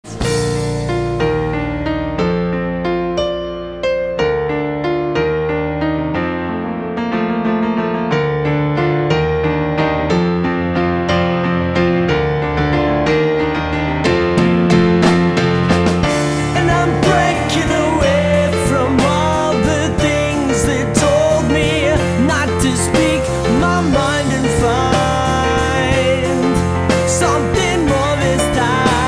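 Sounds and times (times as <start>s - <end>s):
piano: 0.0s - 29.0s.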